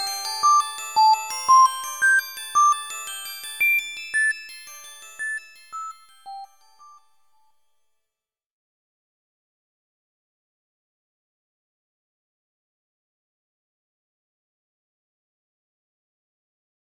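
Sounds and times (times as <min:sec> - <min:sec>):
glockenspiel: 0:00.0 - 0:07.9.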